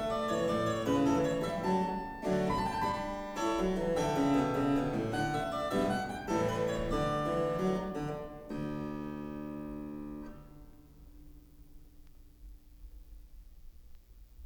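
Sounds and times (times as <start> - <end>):
minuet in D major: 0.0 - 10.5.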